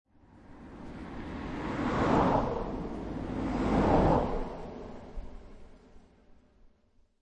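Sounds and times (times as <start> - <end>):
cars driving by on a country road: 0.5 - 5.2.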